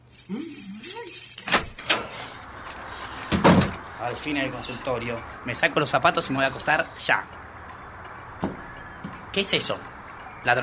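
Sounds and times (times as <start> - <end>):
keys jangling: 0.0 - 2.3
person murmuring: 0.2 - 1.3
speech: 0.3 - 1.5, 4.0 - 7.4, 9.4 - 10.6.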